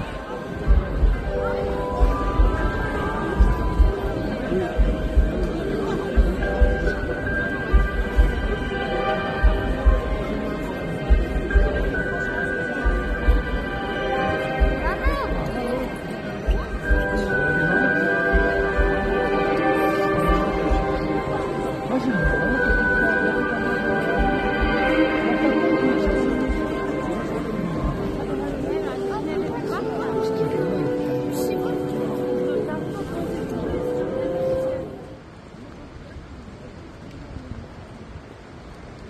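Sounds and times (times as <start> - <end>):
city ambience in Strasbourg: 0.0 - 39.0.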